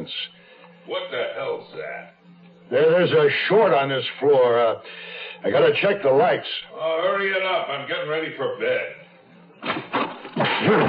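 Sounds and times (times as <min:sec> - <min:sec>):
speech: 0:00.0 - 0:09.0, 0:10.6 - 0:10.8
door slamming shut: 0:09.6 - 0:10.8.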